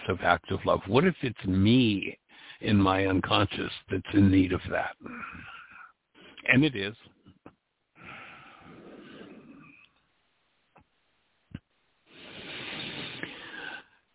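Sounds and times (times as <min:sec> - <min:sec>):
speech: 0:00.1 - 0:05.5, 0:06.4 - 0:07.2
slow breathing: 0:02.3 - 0:02.6, 0:05.0 - 0:06.4, 0:07.9 - 0:09.9, 0:12.0 - 0:14.1.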